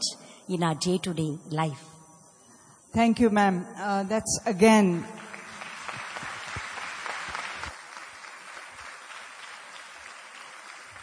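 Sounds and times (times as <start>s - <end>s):
speech: 0.5s - 1.9s, 2.9s - 5.2s
audience clapping: 5.2s - 11.0s.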